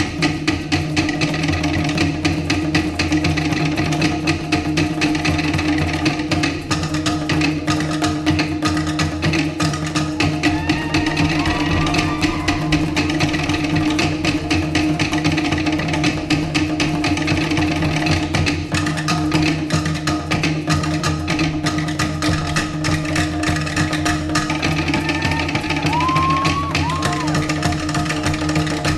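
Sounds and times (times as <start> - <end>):
Polynesian music: 0.0 - 28.9.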